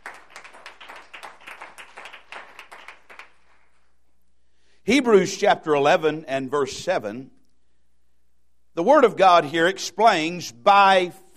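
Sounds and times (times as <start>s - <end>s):
audience clapping: 0.0s - 4.0s
speech: 4.9s - 7.4s, 8.8s - 11.3s.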